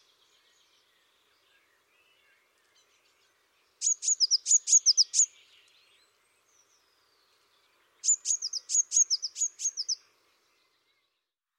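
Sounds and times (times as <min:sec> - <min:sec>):
blue tit calling: 0:03.8 - 0:05.4, 0:08.0 - 0:10.0.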